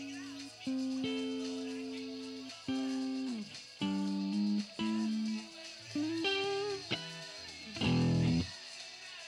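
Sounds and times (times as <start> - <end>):
guitar amp noise: 0.0 - 8.5.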